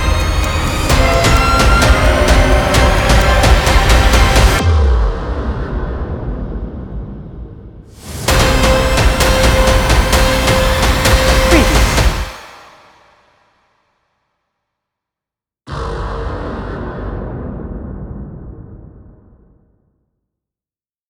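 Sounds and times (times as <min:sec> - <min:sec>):
cinematic scary horror dark fearful music: 0:00.0 - 0:12.9, 0:15.7 - 0:19.4.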